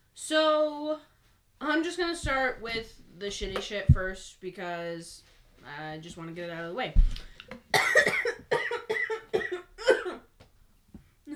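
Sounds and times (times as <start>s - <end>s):
speech: 0.2s - 8.2s
harsh coughing or sneezing: 7.7s - 10.3s.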